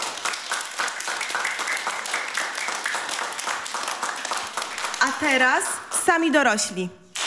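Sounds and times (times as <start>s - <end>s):
children applauding: 0.0s - 5.3s
speech: 5.2s - 7.0s.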